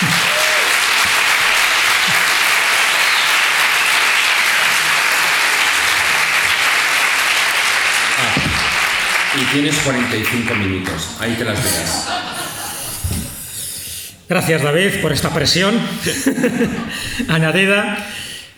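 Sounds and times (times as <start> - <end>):
audience applauding at a talk: 0.0 - 12.2
laughter: 4.4 - 6.7, 10.8 - 13.5, 15.9 - 17.3
speech: 9.5 - 12.4, 14.3 - 18.5.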